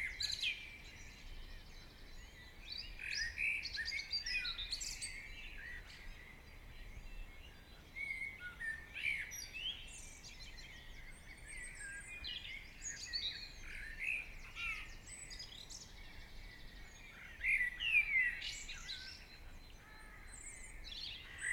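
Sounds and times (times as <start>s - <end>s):
morning birdsong: 0.0s - 21.5s.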